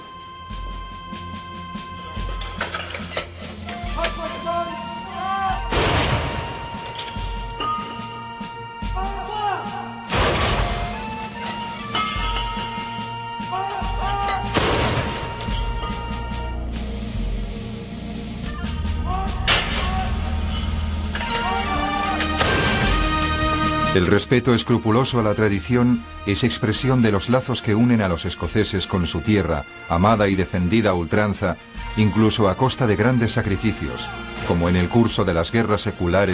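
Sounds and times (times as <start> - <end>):
music: 0.0 - 36.3
cannon salvos fired from Edinburgh Castle bastions: 5.7 - 6.8, 10.1 - 11.1, 14.5 - 15.5
speech: 24.0 - 36.3.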